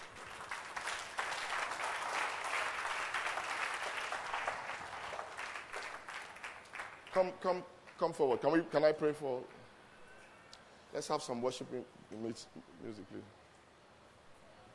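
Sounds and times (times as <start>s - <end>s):
audience clapping: 0.0s - 7.3s
speech: 7.2s - 9.6s, 10.9s - 13.4s.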